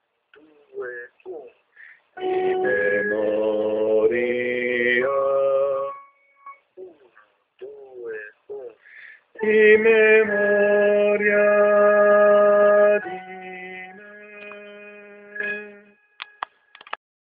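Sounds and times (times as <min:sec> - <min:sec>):
contralto voices: 0:02.2 - 0:06.0, 0:09.4 - 0:15.9.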